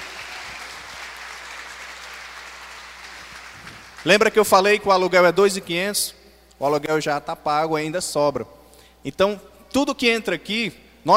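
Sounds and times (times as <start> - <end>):
audience applause: 0.0 - 4.1
speech: 4.0 - 11.1.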